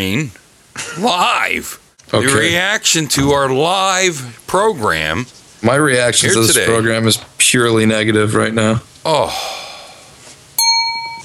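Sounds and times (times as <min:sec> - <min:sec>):
speech: 0:00.0 - 0:00.4, 0:01.0 - 0:09.6
bell ringing: 0:10.6 - 0:11.2.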